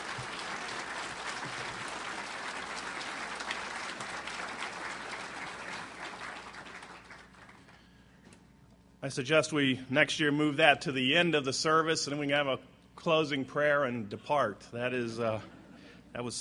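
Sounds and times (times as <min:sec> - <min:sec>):
audience applause: 0:00.0 - 0:07.8
speech: 0:09.0 - 0:15.6, 0:16.2 - 0:16.3.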